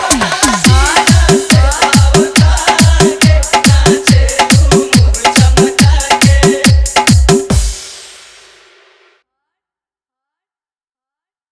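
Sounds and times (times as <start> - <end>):
hard bass music mix: 0.1 - 9.1.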